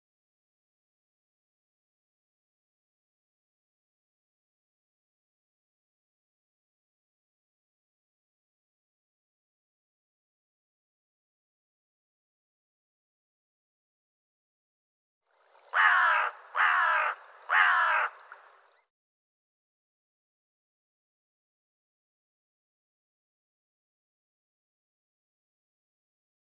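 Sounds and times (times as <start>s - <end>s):
bird giving a harsh raspy caw: 15.6s - 18.8s.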